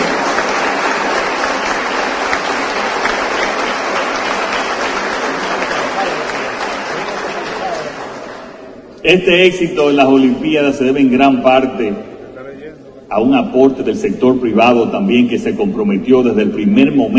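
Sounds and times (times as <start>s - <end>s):
audience applause: 0.0s - 8.8s
speech: 9.1s - 12.1s, 13.1s - 17.1s.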